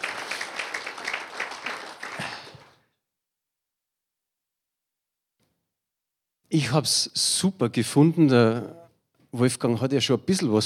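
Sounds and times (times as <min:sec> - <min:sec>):
audience applause: 0:00.0 - 0:02.8
speech: 0:06.5 - 0:10.6.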